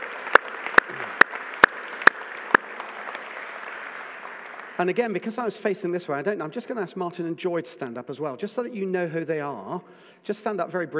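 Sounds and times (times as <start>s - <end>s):
loud sharp hand claps: 0.0s - 4.8s
soft continuous hiss: 0.0s - 10.9s
speech: 4.8s - 10.9s.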